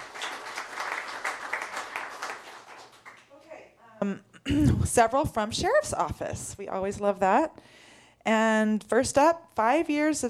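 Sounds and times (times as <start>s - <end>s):
crowd clapping: 0.0s - 3.4s
speech: 4.0s - 10.2s.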